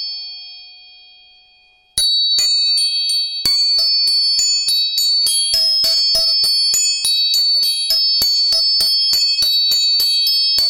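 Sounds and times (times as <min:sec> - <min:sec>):
tuning fork ringing: 0:00.0 - 0:10.6
rapid metallic strikes: 0:03.5 - 0:04.4, 0:05.6 - 0:10.6.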